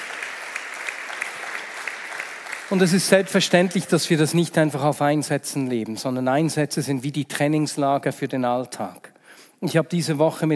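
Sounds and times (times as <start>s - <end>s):
audience applause: 0.0s - 3.8s
speech: 2.7s - 10.5s.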